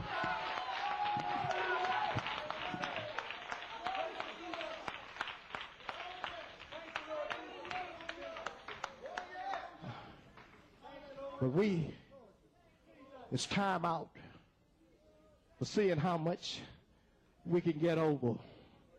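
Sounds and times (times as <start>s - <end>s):
audience clapping hands: 0.0s - 10.7s
speech: 11.4s - 12.0s, 13.3s - 14.2s, 15.6s - 16.8s, 17.4s - 18.5s.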